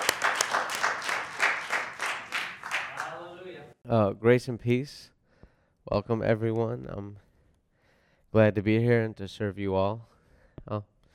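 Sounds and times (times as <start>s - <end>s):
church congregation clapping to welcome a speaker: 0.0s - 3.7s
speech: 3.9s - 5.1s, 5.8s - 7.2s, 8.3s - 10.9s.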